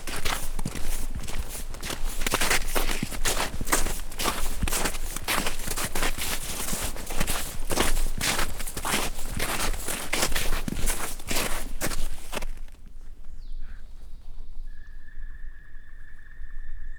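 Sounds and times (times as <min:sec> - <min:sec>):
footsteps in thawing February snow in the Visegrád Mountains: 0:00.0 - 0:13.2.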